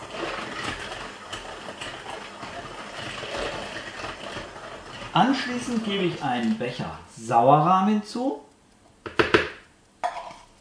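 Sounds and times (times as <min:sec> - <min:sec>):
electric mixer beating batter on low speed: 0:00.0 - 0:06.6
speech: 0:05.2 - 0:08.5.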